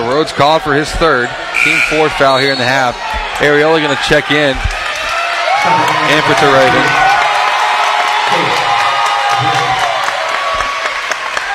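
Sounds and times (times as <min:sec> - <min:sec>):
scattered shouts: 0:00.0 - 0:11.5
speech: 0:00.2 - 0:04.8, 0:05.6 - 0:07.1, 0:08.3 - 0:08.6
Huntington basketball fans clapping and cheering: 0:03.0 - 0:11.5.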